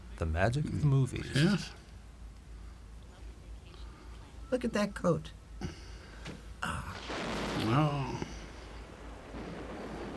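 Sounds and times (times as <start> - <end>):
speech: 0.2 - 1.8, 4.5 - 5.8, 7.7 - 8.0
thunder rumble from a lightning strike: 6.6 - 10.1.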